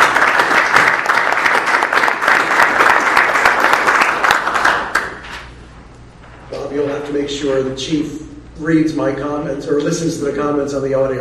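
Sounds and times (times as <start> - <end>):
audience applause: 0.0 - 5.2
speech: 7.2 - 11.1.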